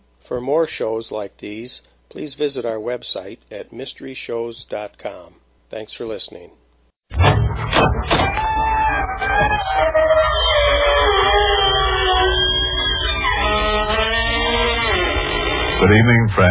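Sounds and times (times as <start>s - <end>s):
speech: 0.3s - 8.5s, 9.3s - 12.4s, 15.8s - 16.4s
creaking door opening: 7.2s - 16.1s.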